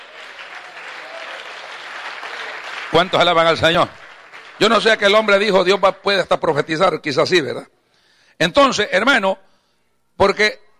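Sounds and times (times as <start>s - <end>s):
audience applause: 0.0s - 5.6s
speech: 2.9s - 4.0s, 4.6s - 7.7s, 8.4s - 9.5s, 10.2s - 10.6s.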